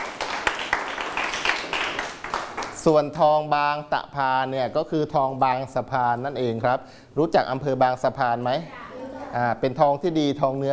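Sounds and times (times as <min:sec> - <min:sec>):
pupils in a classroom clapping rhythmically for a classmate: 0:00.0 - 0:02.9
speech: 0:02.8 - 0:10.7.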